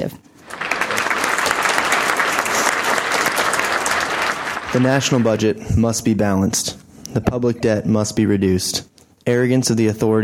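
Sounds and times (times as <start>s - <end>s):
speech: 0.0s - 0.3s, 4.7s - 10.2s
audience applause welcoming two tax cap initiative speakers: 0.4s - 5.6s.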